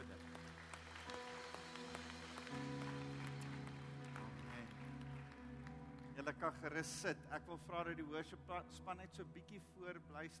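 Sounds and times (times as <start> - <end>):
audience applauding: 0.0 - 6.4
speech: 6.2 - 10.3.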